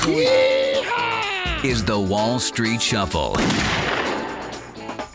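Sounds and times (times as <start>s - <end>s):
speech: 0.1s - 0.6s, 1.6s - 4.1s
gunshot echoing: 3.3s - 4.8s
sharp cracks and thuds: 3.4s - 4.7s.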